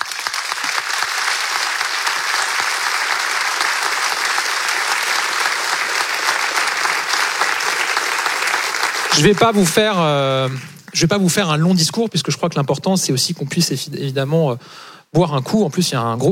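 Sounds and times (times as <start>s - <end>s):
audience applauding: 0.0s - 11.3s
speech: 9.2s - 16.3s.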